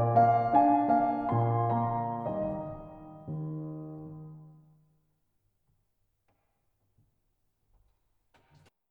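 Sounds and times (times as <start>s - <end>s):
piano waltz: 0.0s - 4.7s.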